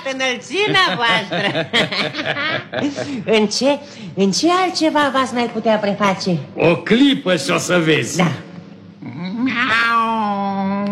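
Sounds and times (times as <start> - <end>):
speech: 0.0 - 8.4
laughter: 0.5 - 3.3
cat meowing: 9.4 - 10.4.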